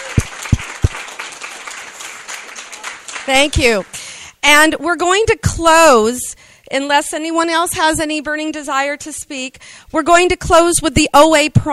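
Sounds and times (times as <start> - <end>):
audience applause for speakers: 0.0 - 4.0
speech: 3.2 - 11.7.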